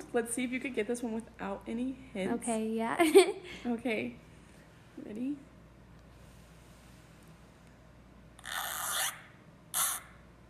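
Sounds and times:
speech: 0:00.1 - 0:04.3, 0:05.0 - 0:05.5
zipper being pulled: 0:08.4 - 0:10.0.

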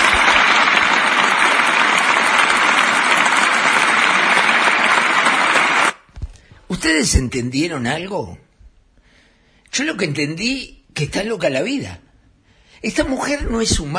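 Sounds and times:
standing applause: 0:00.0 - 0:06.1
speech: 0:06.9 - 0:08.5, 0:09.7 - 0:12.0, 0:12.8 - 0:13.9.

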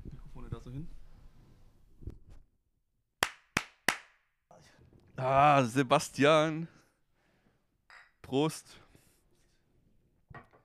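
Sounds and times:
speech: 0:00.7 - 0:01.0, 0:05.2 - 0:06.8, 0:08.3 - 0:08.8
hand claps for syncing audio recordings: 0:03.2 - 0:04.2.

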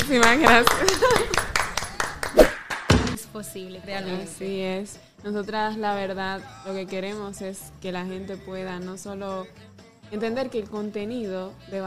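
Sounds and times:
applause: 0:00.0 - 0:03.0
speech: 0:00.1 - 0:01.4, 0:03.4 - 0:11.8
laughter: 0:00.3 - 0:02.2.

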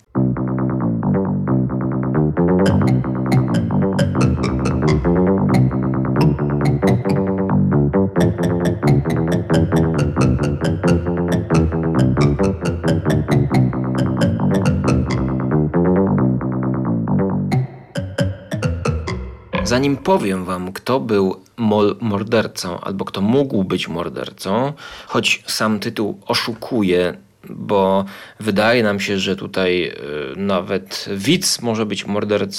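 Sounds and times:
double bass music with plucked notes: 0:00.1 - 0:20.5
speech: 0:02.6 - 0:03.1, 0:19.8 - 0:32.5.

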